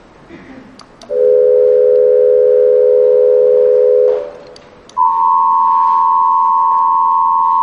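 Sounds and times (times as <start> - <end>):
amplitude-modulated pure sine tones from 500 to 4000 Hz: 1.1 - 4.4, 5.0 - 7.6.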